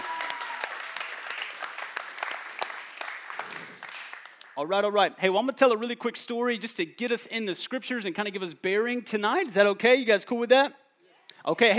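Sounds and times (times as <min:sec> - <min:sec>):
audience applause: 0:00.0 - 0:04.5
speech: 0:04.6 - 0:10.8, 0:11.4 - 0:11.7.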